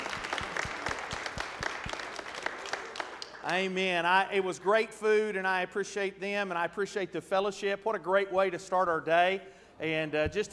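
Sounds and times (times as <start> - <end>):
audience hand clapping: 0.0 - 3.9
speech: 3.4 - 10.5.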